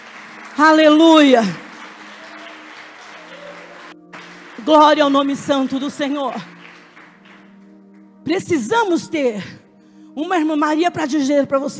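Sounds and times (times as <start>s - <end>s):
audience applause: 0.0s - 7.6s
speech: 0.6s - 1.6s, 4.7s - 6.5s, 8.2s - 9.6s, 10.2s - 11.7s.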